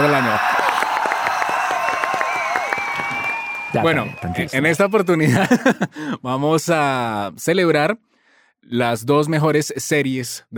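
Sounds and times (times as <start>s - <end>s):
applause: 0.0s - 5.2s
cheering: 0.0s - 5.4s
speech: 0.2s - 0.6s, 3.7s - 10.5s
laughter: 5.0s - 6.2s.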